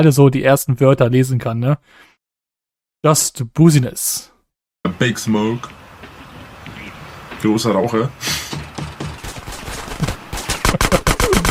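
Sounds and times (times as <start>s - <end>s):
speech: 0.0s - 2.1s, 3.0s - 5.8s, 7.4s - 8.6s
video game automatic gunfire: 8.6s - 11.4s.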